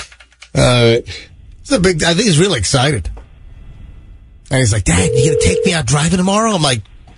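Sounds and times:
speech: 0.5s - 3.2s, 4.5s - 6.9s
telephone keypad dialing beeps: 5.0s - 5.8s.

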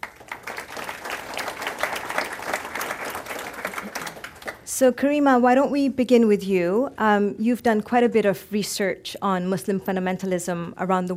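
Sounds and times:
audience applauding to welcome two speakers: 0.0s - 4.6s
speech: 4.7s - 11.1s.

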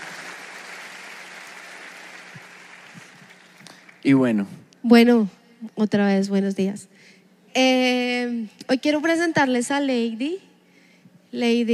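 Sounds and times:
audience applause: 0.0s - 4.0s
speech: 4.0s - 6.9s, 7.6s - 10.5s, 11.3s - 11.7s.

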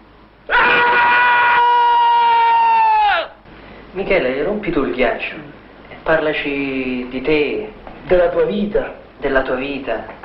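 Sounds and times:
group shouting a basketball team cry: 0.5s - 3.4s
speech: 4.0s - 10.2s.

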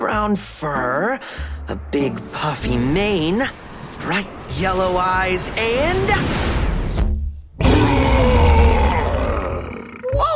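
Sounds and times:
speech: 0.2s - 6.5s
lion roaring: 7.6s - 10.0s.

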